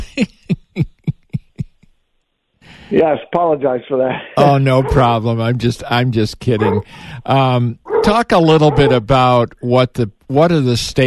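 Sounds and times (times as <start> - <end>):
speech: 0.2 - 0.4, 2.9 - 11.0
dog barking: 4.4 - 5.1, 6.6 - 7.0, 7.9 - 9.2.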